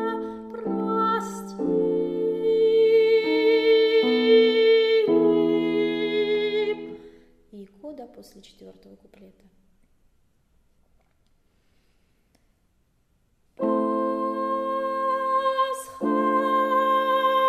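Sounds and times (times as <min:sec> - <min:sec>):
soprano singing: 0:00.0 - 0:07.2, 0:13.6 - 0:17.4.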